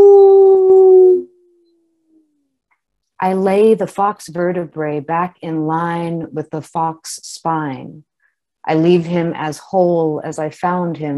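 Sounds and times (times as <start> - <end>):
person howling like a wolf: 0.0 - 1.3
speech: 3.2 - 8.1, 8.7 - 11.1.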